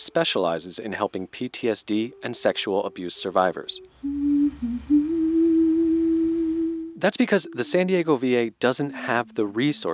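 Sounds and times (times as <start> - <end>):
speech: 0.1 - 5.0, 7.0 - 9.9
woman humming: 3.9 - 7.9.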